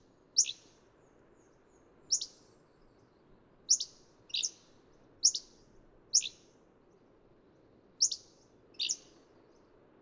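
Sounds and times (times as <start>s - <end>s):
Hammond's flycatcher calling with sharp chips and burry notes: 0.4s - 0.6s, 2.1s - 2.3s, 3.7s - 4.6s, 5.2s - 5.5s, 8.0s - 8.2s, 8.8s - 9.0s.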